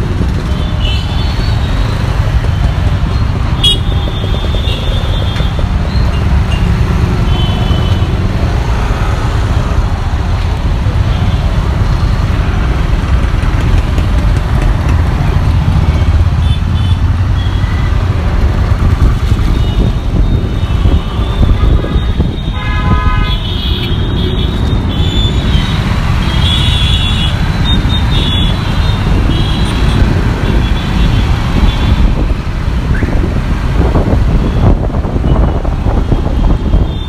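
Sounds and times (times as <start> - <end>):
dense city traffic in Madras (Chennai): 0.0 - 37.0
car horn toots in Madras (Chennai) traffic: 21.2 - 24.0.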